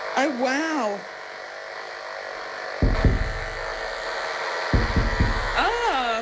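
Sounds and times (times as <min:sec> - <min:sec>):
speech: 0:00.2 - 0:01.2
knifefish electrical pulses played through speaker: 0:02.8 - 0:04.2, 0:04.8 - 0:06.2.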